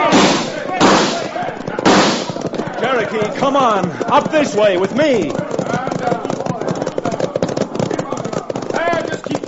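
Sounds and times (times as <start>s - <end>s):
gunshots in a Western radio drama: 0.0s - 2.8s
people shouting: 0.0s - 9.3s
speech: 3.1s - 5.4s.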